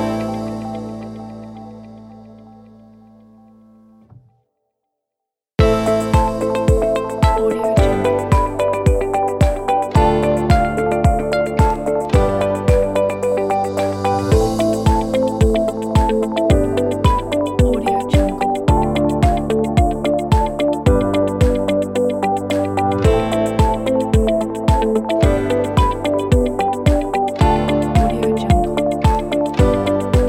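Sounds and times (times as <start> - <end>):
minimal corporate music: 0.0 - 4.3, 5.6 - 30.2.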